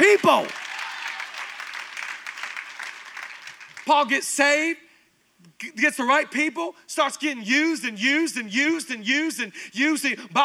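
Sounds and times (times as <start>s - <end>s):
church audience applauding: 0.0s - 3.9s
speech: 0.3s - 0.6s, 3.9s - 4.9s, 5.6s - 10.4s.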